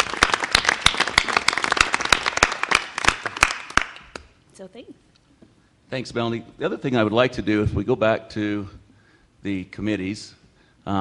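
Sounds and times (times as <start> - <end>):
audience applause: 0.0 - 4.2
speech: 4.6 - 5.2, 5.9 - 8.8, 9.4 - 10.9.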